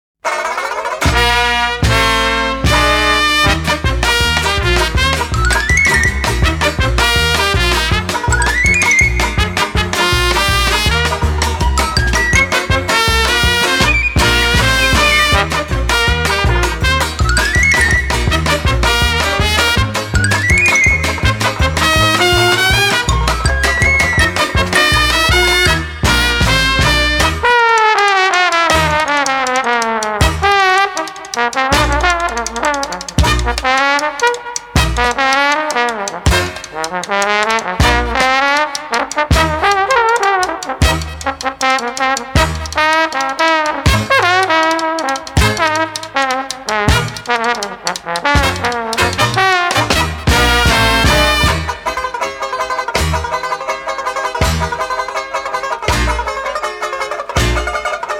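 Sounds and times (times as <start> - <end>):
funny circus band playing slapstick comic music: 0.2 - 58.1.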